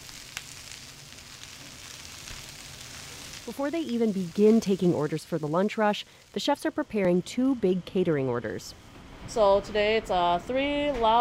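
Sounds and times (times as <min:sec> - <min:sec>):
dumplings sizzling in hot oil in a restaurant kitchen: 0:00.0 - 0:07.5
speech: 0:03.5 - 0:11.1.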